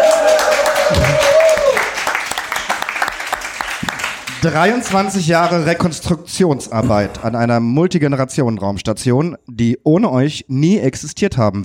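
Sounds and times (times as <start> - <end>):
audience applause: 0.0 - 5.6
speech: 4.4 - 11.6.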